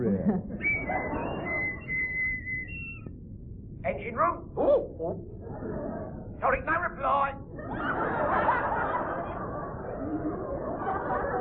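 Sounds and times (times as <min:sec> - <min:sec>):
laughter: 0:00.0 - 0:02.0, 0:05.4 - 0:06.3, 0:07.5 - 0:11.4
speech: 0:00.1 - 0:00.7, 0:03.8 - 0:07.4
whistle from air blown down a voice pipe: 0:00.6 - 0:03.1.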